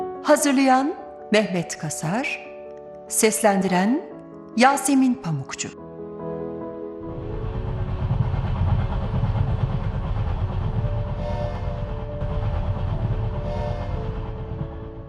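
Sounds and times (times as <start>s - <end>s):
speech: 0.3s - 2.5s, 3.1s - 5.8s
train running on rails: 7.0s - 15.0s.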